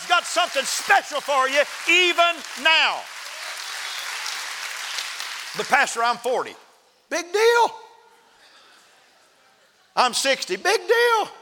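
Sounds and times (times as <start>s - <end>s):
audience clapping: 0.0s - 6.5s
speech: 0.2s - 3.2s, 5.5s - 7.8s, 10.0s - 11.4s.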